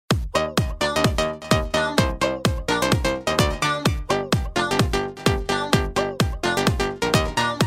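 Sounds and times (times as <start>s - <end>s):
electronic music: 0.1s - 7.6s.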